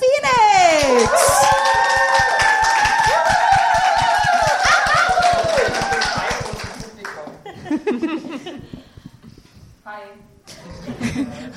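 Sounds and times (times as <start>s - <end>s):
crowd audience applause: 0.8s - 7.3s
laughter: 4.7s - 9.2s, 10.7s - 11.5s.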